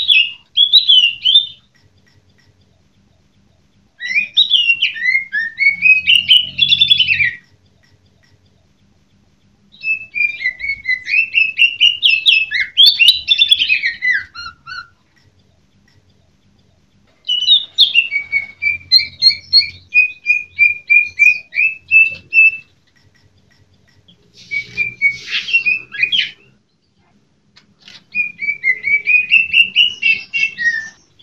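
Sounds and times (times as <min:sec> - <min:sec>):
greater green leafbird whistled song: 0:00.0 - 0:01.7, 0:04.0 - 0:07.6, 0:09.7 - 0:15.0, 0:17.2 - 0:22.8, 0:24.1 - 0:26.6, 0:28.1 - 0:31.2.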